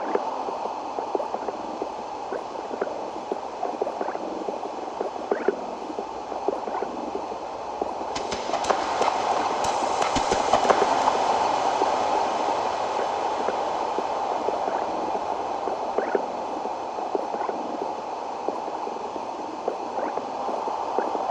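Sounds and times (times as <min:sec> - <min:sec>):
interference: 0:00.0 - 0:12.0, 0:13.0 - 0:18.9, 0:19.6 - 0:21.2.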